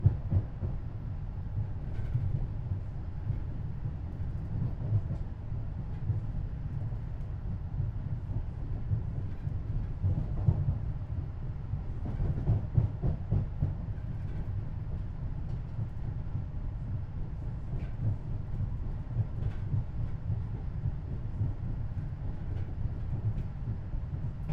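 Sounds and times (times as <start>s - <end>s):
train interior corridor ambience at fast constant speed: 0.0s - 24.5s.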